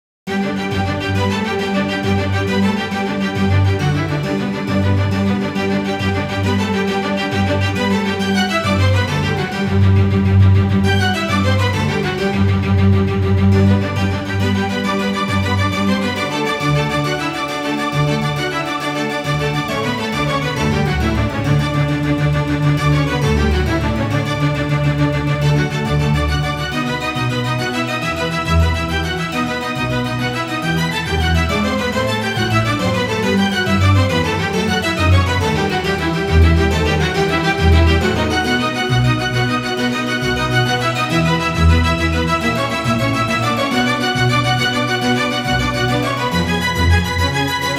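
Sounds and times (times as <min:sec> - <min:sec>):
classical concerto: 0:00.3 - 0:47.7.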